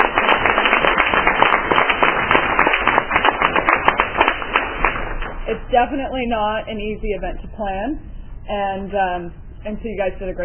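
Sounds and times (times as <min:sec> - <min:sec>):
applause from a group at a meeting: 0:00.0 - 0:05.5
speech: 0:05.5 - 0:10.4.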